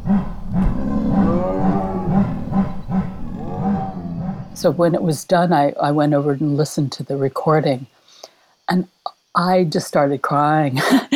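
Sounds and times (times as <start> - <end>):
big cats roaring and chuffing: 0.0 - 5.2
speech: 4.6 - 8.0, 8.7 - 11.1.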